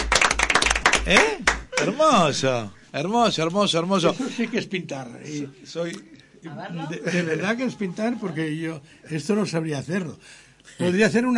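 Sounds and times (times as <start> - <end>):
hands clapping: 0.0 - 2.0
speech: 1.1 - 11.3.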